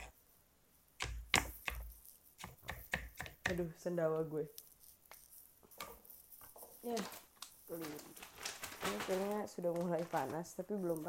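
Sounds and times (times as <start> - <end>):
knife chopping food on a wobbly cutting board: 1.0 - 3.7
speech: 3.5 - 4.6, 6.8 - 8.1, 9.0 - 11.0.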